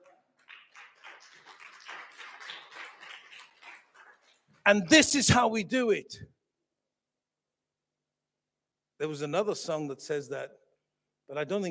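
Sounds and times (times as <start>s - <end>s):
audience clapping: 0.0s - 4.8s
speech: 4.7s - 6.3s, 9.0s - 10.6s, 11.3s - 11.6s.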